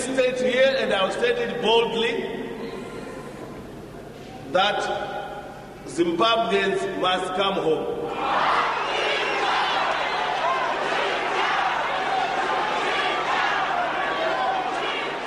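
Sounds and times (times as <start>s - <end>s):
speech: 0.1s - 2.4s, 4.5s - 5.2s, 5.8s - 8.8s
crowd jeering and chanting: 8.1s - 15.2s
large crowd roaring: 8.1s - 15.2s.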